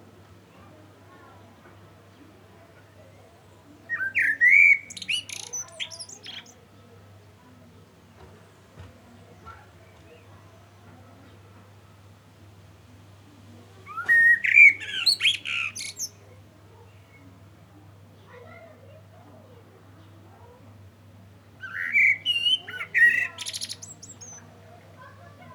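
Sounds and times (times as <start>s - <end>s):
common blackbird singing: 3.9s - 6.6s, 13.9s - 16.2s, 21.6s - 24.5s.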